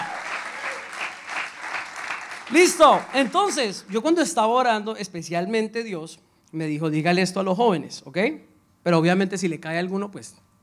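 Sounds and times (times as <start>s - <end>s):
audience applause: 0.0s - 4.0s
speech: 2.5s - 10.5s.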